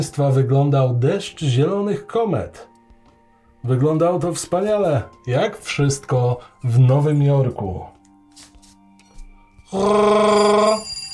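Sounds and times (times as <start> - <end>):
speech: 0.0 - 2.7, 3.6 - 7.9, 9.7 - 10.9
electronic doorbell ringing: 9.6 - 11.1.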